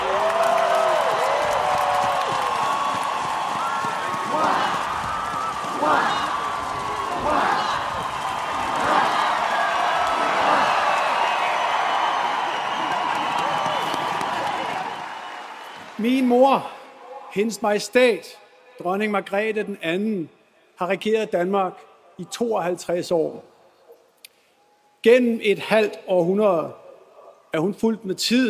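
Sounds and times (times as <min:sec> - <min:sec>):
crowd cheering for king Fredrik X on balcony: 0:00.0 - 0:17.3
speech: 0:17.3 - 0:23.5, 0:25.0 - 0:26.8, 0:27.5 - 0:28.4.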